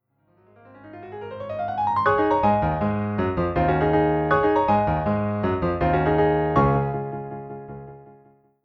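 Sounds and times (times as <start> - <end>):
orchestral melody: 1.9 - 8.0.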